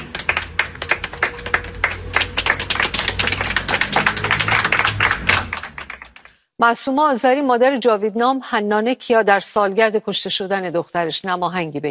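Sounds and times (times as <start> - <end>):
crowd clapping at a memorial gathering for slain protesters: 0.0 - 6.4
speech: 6.6 - 11.9.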